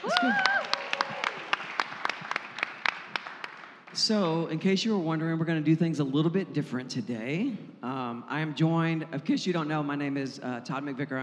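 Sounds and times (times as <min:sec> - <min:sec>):
speech: 0:00.0 - 0:00.6, 0:04.0 - 0:11.2
audience applause and cheering: 0:00.0 - 0:04.0.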